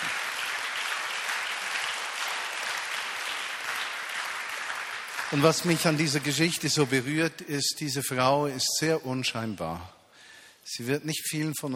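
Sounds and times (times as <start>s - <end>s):
audience applause: 0.0s - 6.9s
speech: 5.3s - 10.0s, 10.7s - 11.7s.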